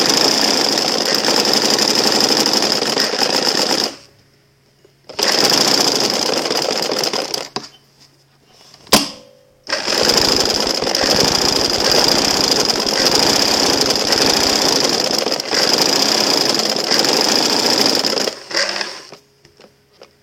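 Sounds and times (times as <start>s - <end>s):
sewing machine: 0.0s - 4.1s, 5.1s - 7.5s, 9.7s - 19.2s.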